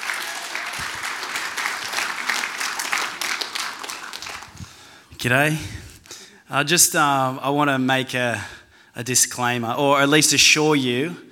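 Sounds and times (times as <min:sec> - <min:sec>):
audience round of applause: 0:00.0 - 0:05.0
speech: 0:05.2 - 0:05.8, 0:06.5 - 0:11.3.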